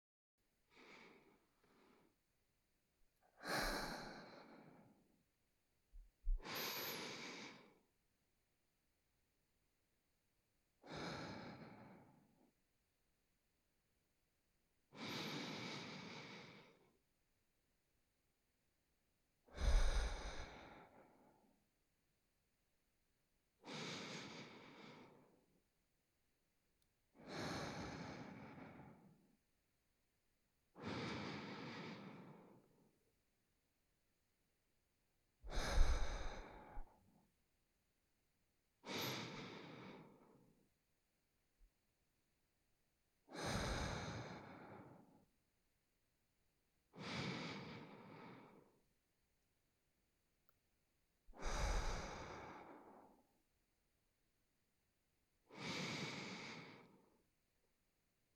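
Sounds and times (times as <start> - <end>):
person breathing through the nose while sleeping: 3.2 - 5.1, 6.3 - 7.9, 15.0 - 17.0, 19.4 - 21.5, 23.6 - 25.5, 27.2 - 29.3, 30.8 - 32.9, 35.5 - 37.0, 38.8 - 40.6, 43.3 - 45.3, 47.0 - 48.8, 51.4 - 53.3, 55.5 - 57.2.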